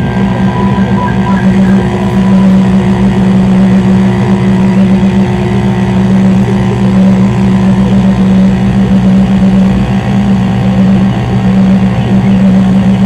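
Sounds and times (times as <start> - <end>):
fainter buzzing band: 0.0 - 5.0
thin whining tones: 0.0 - 5.0
electrical hum from three receivers and amplifiers: 0.0 - 13.0.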